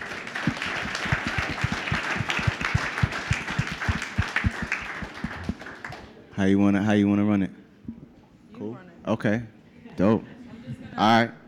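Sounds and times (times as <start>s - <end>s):
round of applause: 0.0s - 6.2s
speech: 6.4s - 7.6s, 9.1s - 11.4s.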